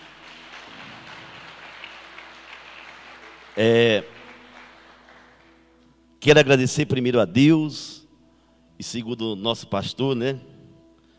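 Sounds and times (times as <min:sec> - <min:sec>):
church audience applauding: 0:00.0 - 0:05.7
speech: 0:03.6 - 0:04.2, 0:06.2 - 0:08.0, 0:08.8 - 0:10.5.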